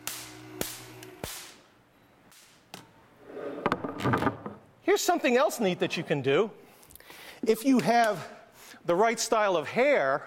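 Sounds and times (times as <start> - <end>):
artificial lightning spark cracks: 0.0 - 1.7, 2.3 - 2.7
low electrical hum: 0.0 - 10.2
speech: 4.9 - 6.6, 7.4 - 10.2.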